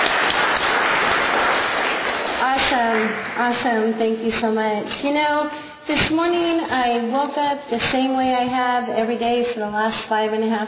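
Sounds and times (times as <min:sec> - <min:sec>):
audience applause: 0:00.0 - 0:03.4
speech: 0:03.4 - 0:10.6.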